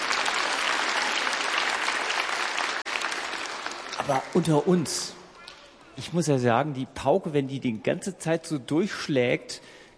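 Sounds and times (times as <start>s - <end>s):
audience applause: 0.0s - 4.8s
speech: 4.0s - 5.2s, 6.0s - 9.9s.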